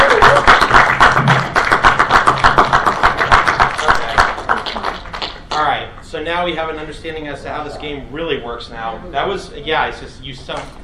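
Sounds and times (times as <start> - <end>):
round of applause from a small group: 0.0 - 5.8
speech: 6.3 - 10.8.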